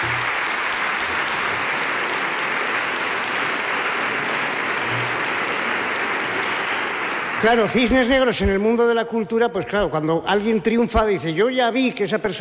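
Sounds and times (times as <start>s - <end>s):
audience applause: 0.0s - 9.0s
speech: 7.4s - 12.4s.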